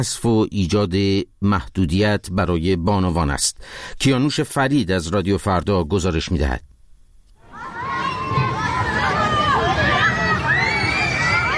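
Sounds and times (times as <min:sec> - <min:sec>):
speech: 0:00.0 - 0:06.7
children playing and shouting in a Tehran park: 0:07.4 - 0:11.5
families chattering in a Tehran park: 0:07.4 - 0:11.5.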